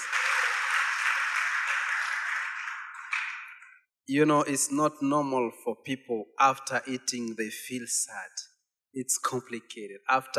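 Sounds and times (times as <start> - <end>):
audience clapping: 0.0 - 3.8
speech: 4.1 - 10.3.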